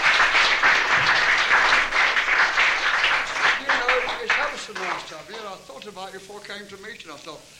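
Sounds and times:
audience clapping: 0:00.0 - 0:05.9
speech: 0:06.2 - 0:07.5.

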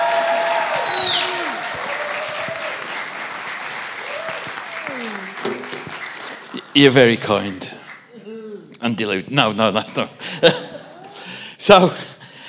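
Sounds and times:
audience applause: 0:00.0 - 0:08.1
speech: 0:06.8 - 0:07.8, 0:08.8 - 0:10.6, 0:11.7 - 0:12.1.

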